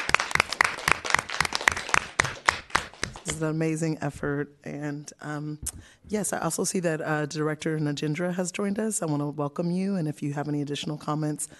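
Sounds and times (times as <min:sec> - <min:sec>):
audience applause: 0:00.0 - 0:03.2
speech: 0:03.2 - 0:11.5.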